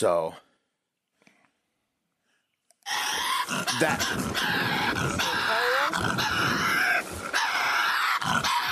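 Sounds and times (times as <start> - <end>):
speech: 0.0 - 0.4, 2.9 - 6.6
Tasmanian devil screaming: 2.9 - 8.7.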